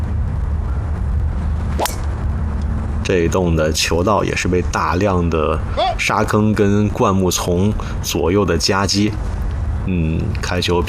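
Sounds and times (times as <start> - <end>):
low rumbling background: 0.0 - 10.8
Charley Hull's golf tee shot on the seventeenth hole: 1.7 - 2.2
speech: 3.1 - 10.8.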